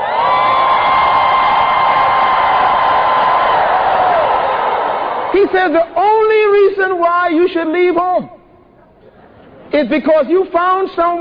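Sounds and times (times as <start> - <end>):
audience screaming: 0.0 - 5.4
speech: 5.4 - 8.4, 9.7 - 11.1.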